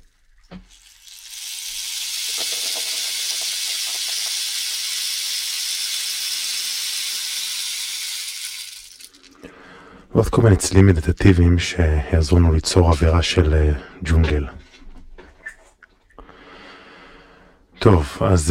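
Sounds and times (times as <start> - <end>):
rain stick pattering: 0.0 - 9.5
speech: 10.2 - 14.6, 17.8 - 18.5.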